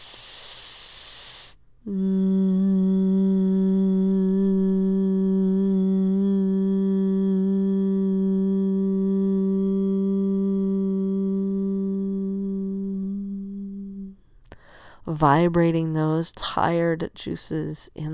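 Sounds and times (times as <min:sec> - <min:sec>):
breathy rush of air: 0:00.0 - 0:01.6
speech: 0:01.8 - 0:02.1, 0:15.1 - 0:18.1
low resonant chanted releasing vocal tone: 0:01.8 - 0:14.3.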